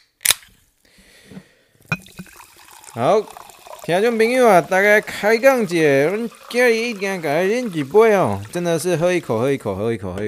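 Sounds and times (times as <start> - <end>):
sparkling water fizzing: 1.9 - 9.6
speech: 3.0 - 10.2.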